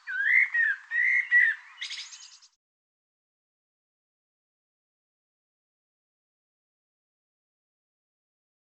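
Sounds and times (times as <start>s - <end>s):
bird song: 0.0s - 2.6s.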